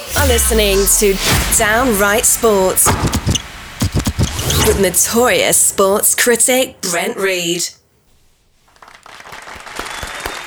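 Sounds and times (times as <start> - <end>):
speech: 0.3 - 3.3, 4.7 - 7.8
audience applause and claps: 8.8 - 10.4.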